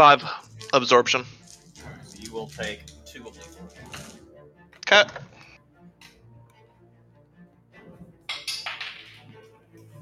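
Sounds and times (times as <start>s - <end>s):
speech: 0.0s - 1.4s, 2.3s - 4.0s, 4.9s - 5.3s
dice clattering onto a table: 8.3s - 9.3s.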